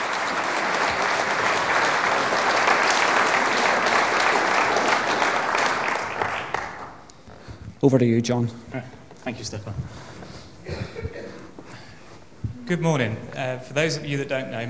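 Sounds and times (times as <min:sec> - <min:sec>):
round of applause: 0:00.0 - 0:07.1
speech: 0:07.8 - 0:10.2, 0:12.7 - 0:14.6.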